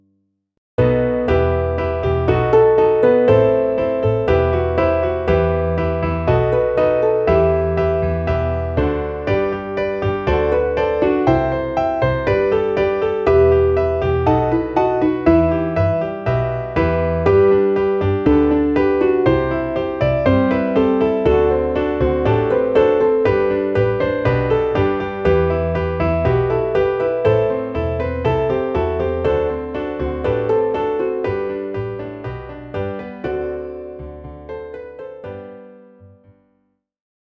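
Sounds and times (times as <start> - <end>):
MIDI piano: 0.8 - 36.7.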